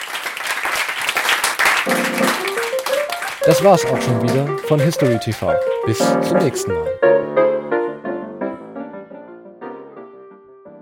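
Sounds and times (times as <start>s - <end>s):
audience applause: 0.0s - 6.9s
sustained musical tones: 1.9s - 7.9s
speech: 3.4s - 7.4s.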